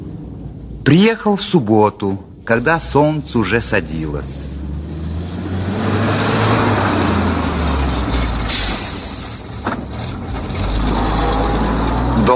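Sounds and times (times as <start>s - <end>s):
ZIL truck engine rumbling: 0.0s - 12.3s
speech: 0.8s - 4.4s
hissing bursts: 8.4s - 9.6s.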